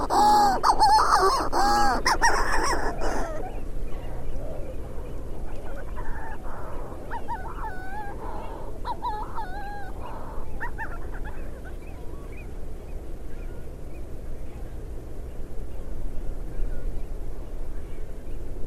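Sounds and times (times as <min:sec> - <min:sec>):
bird calling with nasal honking notes: 0:00.0 - 0:12.5.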